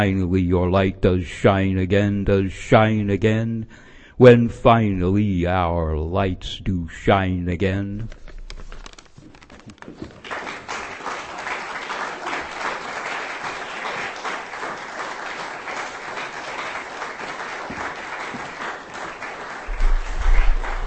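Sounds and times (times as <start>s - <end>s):
speech: 0.0s - 8.2s
audience applause at a live reading event: 9.5s - 20.8s.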